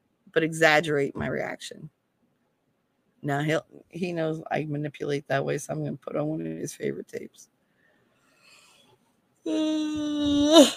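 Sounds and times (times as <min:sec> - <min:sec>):
speech: 0:00.4 - 0:02.0, 0:03.2 - 0:07.5, 0:09.4 - 0:10.7
person yawning: 0:09.5 - 0:10.7.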